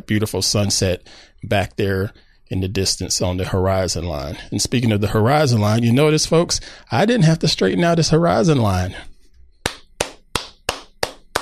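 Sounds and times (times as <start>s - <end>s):
speech: 0.0s - 9.1s
person clapping hands: 9.6s - 11.4s.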